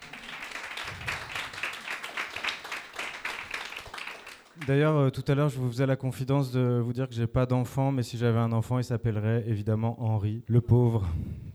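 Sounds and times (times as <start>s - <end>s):
audience applause: 0.0s - 4.7s
speech: 4.6s - 11.5s.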